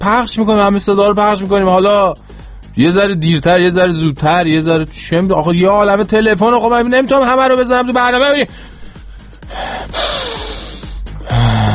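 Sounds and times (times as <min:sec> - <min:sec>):
speech: 0:00.0 - 0:08.7
person taking a deep breath: 0:02.2 - 0:02.7, 0:08.5 - 0:11.7.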